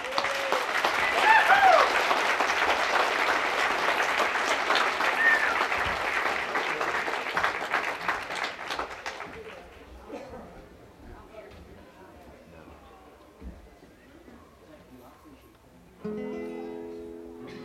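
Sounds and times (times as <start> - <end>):
audience applause welcoming a performer onto the stage: 0.0 - 10.0.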